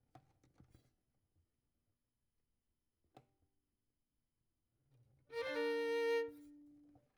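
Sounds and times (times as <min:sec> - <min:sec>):
violin: 0:05.3 - 0:07.0.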